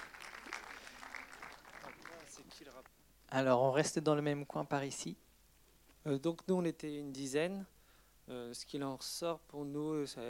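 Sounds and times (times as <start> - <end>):
audience applause: 0.0 - 2.9
speech: 2.4 - 5.2, 6.0 - 10.2.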